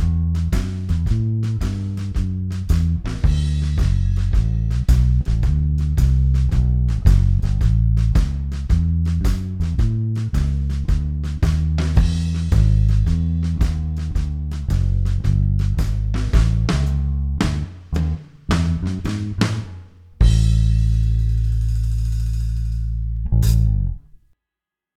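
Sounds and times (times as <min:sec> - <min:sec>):
shuffle music in A: 0:00.0 - 0:23.9.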